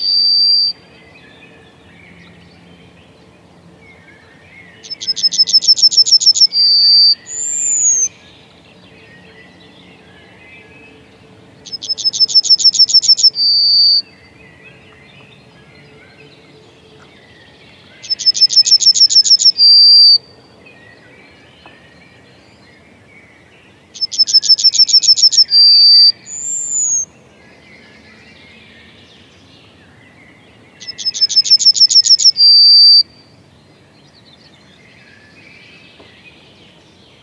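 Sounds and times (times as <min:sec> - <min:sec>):
faint bird calls: 0:00.0 - 0:02.4, 0:03.9 - 0:22.6, 0:23.9 - 0:27.1, 0:30.8 - 0:33.4
Yellowhammer singing: 0:00.0 - 0:37.2.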